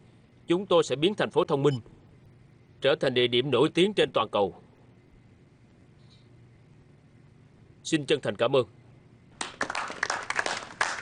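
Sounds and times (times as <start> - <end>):
speech: 0.5 - 2.0, 2.8 - 4.6, 7.9 - 8.8
audience applause after a speech: 9.4 - 11.0.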